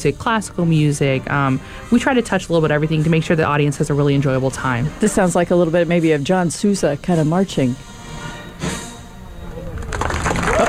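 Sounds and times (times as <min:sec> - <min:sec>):
speech: 0:00.0 - 0:07.9
audience applause: 0:09.7 - 0:10.6.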